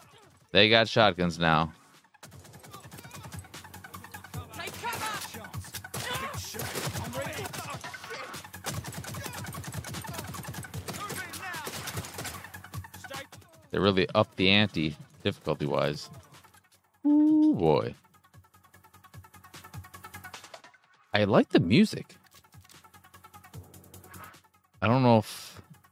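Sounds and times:
speech: 0.5s - 1.8s, 13.8s - 16.2s, 17.0s - 18.0s, 21.2s - 22.2s, 24.8s - 25.5s
shotgun fire in a video game: 4.6s - 12.6s.

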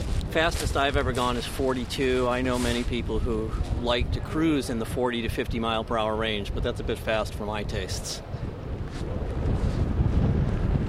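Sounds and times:
strong sea breeze wind: 0.0s - 10.8s
speech: 0.4s - 9.2s.

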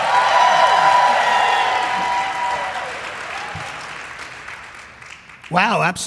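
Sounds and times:
crowd cheering and whooping at a rally: 0.0s - 4.6s
crowd applause at a rally: 0.0s - 5.7s.

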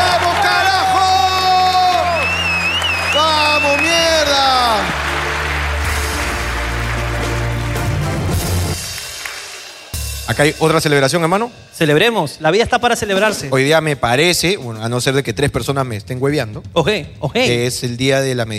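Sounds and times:
crowd audience applause and cheering: 0.0s - 10.3s
speech: 10.3s - 18.5s.

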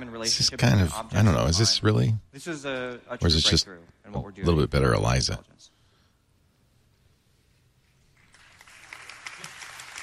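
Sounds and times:
speech: 0.0s - 5.7s
tepid audience applause: 8.2s - 10.0s.

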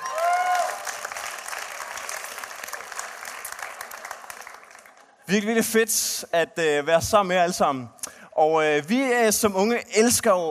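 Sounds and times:
whistle or cheer: 0.0s - 0.8s
crowd applause: 0.0s - 5.2s
speech: 5.3s - 10.4s.

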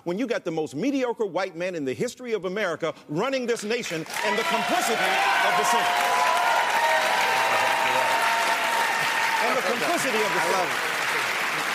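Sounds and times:
speech: 0.0s - 6.3s, 9.4s - 11.2s
audience cheering: 4.1s - 11.7s.

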